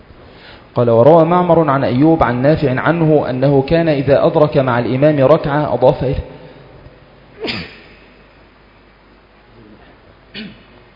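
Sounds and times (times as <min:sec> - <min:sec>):
speech: 0:00.8 - 0:06.3
sneeze: 0:07.4 - 0:08.0, 0:10.3 - 0:10.8.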